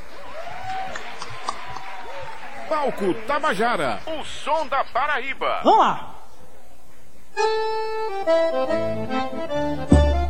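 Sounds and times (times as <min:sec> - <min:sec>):
applause: 0:00.1 - 0:04.0
speech: 0:02.7 - 0:06.1, 0:07.4 - 0:10.1.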